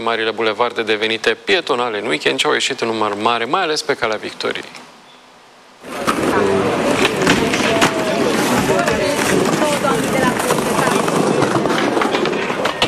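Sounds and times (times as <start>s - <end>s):
speech: 0.0s - 4.8s
skateboards rolling on the asphalt of Calea Victoriei boulevard: 5.8s - 12.8s.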